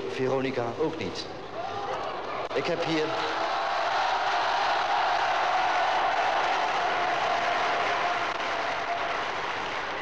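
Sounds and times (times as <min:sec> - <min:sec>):
speech: 0:00.2 - 0:01.4, 0:02.6 - 0:03.4
audience applause: 0:03.5 - 0:09.9.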